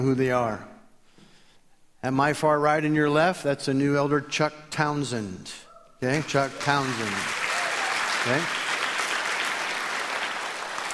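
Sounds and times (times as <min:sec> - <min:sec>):
speech: 0:00.0 - 0:00.7, 0:02.0 - 0:07.4, 0:08.2 - 0:08.6
church audience applauding a new elder: 0:06.1 - 0:10.9.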